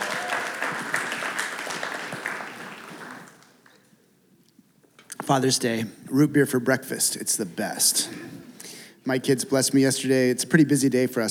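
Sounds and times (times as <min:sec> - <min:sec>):
audience applause: 0:00.0 - 0:03.8
speech: 0:05.3 - 0:11.2.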